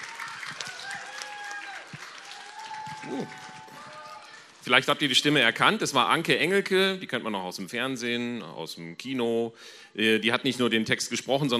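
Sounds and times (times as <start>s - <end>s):
audience applause: 0.0s - 5.3s
speech: 3.1s - 3.4s, 4.7s - 11.5s.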